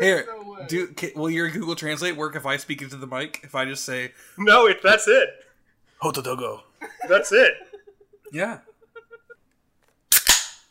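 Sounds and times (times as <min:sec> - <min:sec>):
speech: 0:00.0 - 0:07.7, 0:08.3 - 0:08.7
can being opened: 0:10.1 - 0:10.6.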